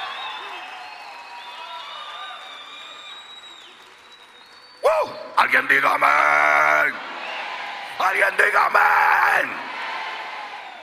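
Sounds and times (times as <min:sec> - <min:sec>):
audience shouting and cheering in victory: 0:00.0 - 0:03.0, 0:04.8 - 0:10.8
audience applause: 0:00.0 - 0:05.6, 0:09.7 - 0:10.8
speech: 0:05.0 - 0:07.1, 0:08.0 - 0:09.7.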